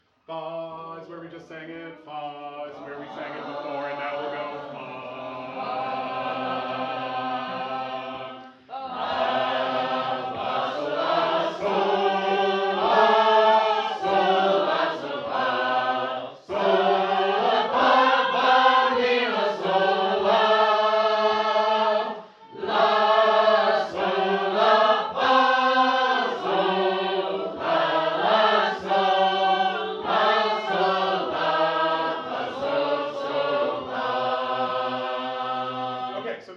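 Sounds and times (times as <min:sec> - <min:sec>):
sacred harp shape note choir singing in a low key: 0:02.1 - 0:36.3.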